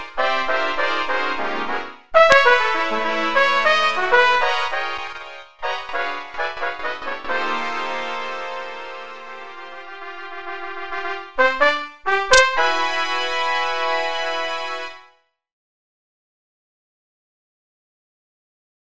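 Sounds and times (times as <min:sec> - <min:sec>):
MIDI fanfare: 0:00.0 - 0:15.1.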